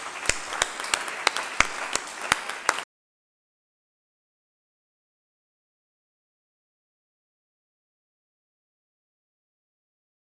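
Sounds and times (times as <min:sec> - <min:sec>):
audience applause: 0:00.0 - 0:02.9.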